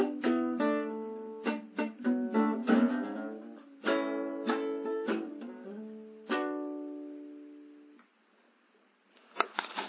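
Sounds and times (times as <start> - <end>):
boogie on guitar: 0.0 - 7.1.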